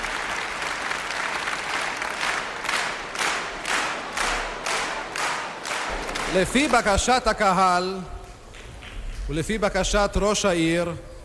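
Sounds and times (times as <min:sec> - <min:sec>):
large audience applause: 0:00.0 - 0:07.3
speech: 0:06.3 - 0:08.2, 0:09.3 - 0:11.1.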